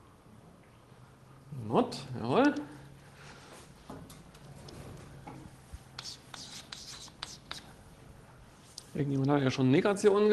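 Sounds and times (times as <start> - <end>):
speech: 1.7 - 2.8, 9.0 - 10.3
person writing an abbreviation on a board: 6.0 - 7.7.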